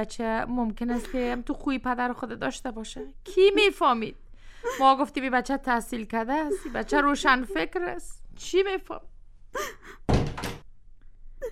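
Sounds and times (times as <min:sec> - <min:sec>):
speech: 0:00.0 - 0:10.0
door or gate creaking open: 0:10.1 - 0:10.7.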